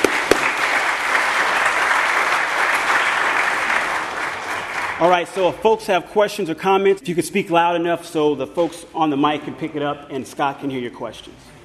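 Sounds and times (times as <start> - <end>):
audience applause: 0.0 - 5.1
speech: 5.0 - 11.5.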